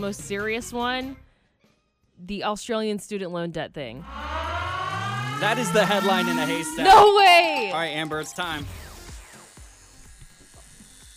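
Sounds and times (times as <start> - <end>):
speech: 0.0 - 1.2, 2.2 - 4.5, 5.4 - 8.8
electric shaver shaving a mustache: 6.5 - 11.1.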